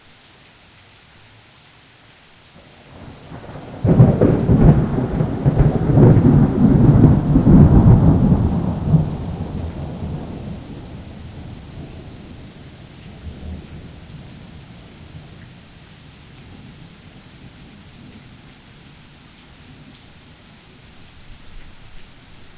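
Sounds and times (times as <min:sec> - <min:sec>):
thunder: 0:02.9 - 0:12.2.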